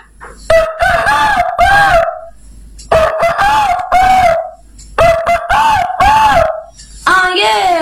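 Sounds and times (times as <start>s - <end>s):
rooster crowing: 0.5s - 2.3s, 2.9s - 6.7s.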